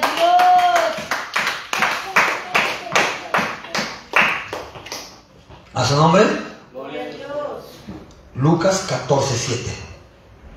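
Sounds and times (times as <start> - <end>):
audience clapping: 0.0 - 5.3
speech: 5.9 - 6.4, 8.4 - 9.9.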